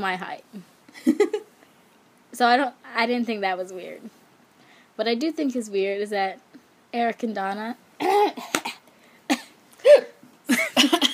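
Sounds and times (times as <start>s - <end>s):
speech: 0.0s - 1.3s, 2.4s - 4.2s, 5.0s - 8.5s
choking cough: 8.0s - 11.1s.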